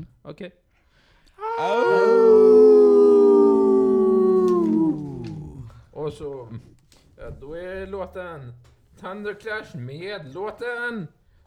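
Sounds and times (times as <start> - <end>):
speech: 0.3 - 0.7, 1.4 - 2.4, 6.1 - 11.2
several people howling like wolves: 1.4 - 5.7.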